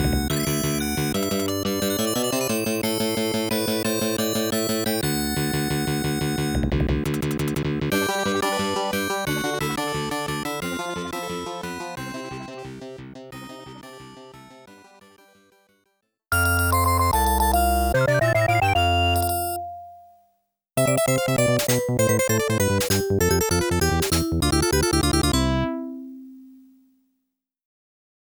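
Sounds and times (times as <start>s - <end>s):
afternoon game background music: 0.0s - 15.2s, 16.3s - 20.2s, 20.8s - 26.6s
game start jingle: 16.4s - 20.0s, 20.8s - 26.4s.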